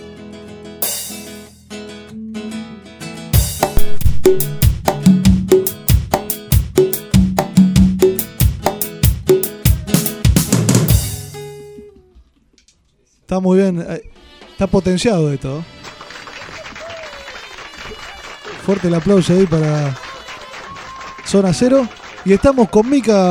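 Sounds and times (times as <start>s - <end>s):
band playing upbeat cumbia: 0.8s - 1.5s, 3.4s - 11.7s
speech: 4.3s - 4.6s, 13.4s - 15.8s, 18.7s - 20.0s, 21.3s - 23.2s.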